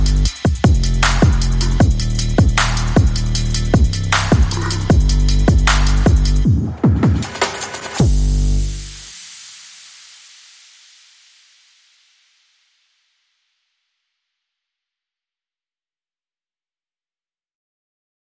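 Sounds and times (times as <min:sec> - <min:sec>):
bass: 0:00.0 - 0:06.8, 0:08.0 - 0:09.1
drums: 0:00.0 - 0:11.6.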